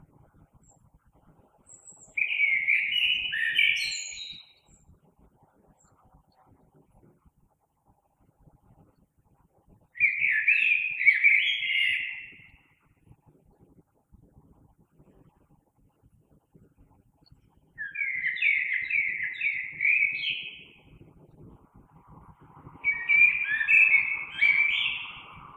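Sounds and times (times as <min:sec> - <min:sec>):
common blackbird song: 0:00.6 - 0:00.9, 0:01.6 - 0:05.0, 0:09.9 - 0:12.8, 0:17.2 - 0:21.0, 0:22.8 - 0:25.5.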